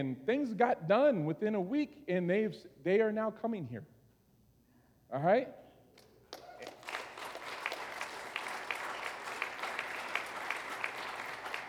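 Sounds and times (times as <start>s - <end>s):
speech: 0.0s - 4.0s, 5.1s - 5.6s
audience clapping: 6.0s - 11.6s.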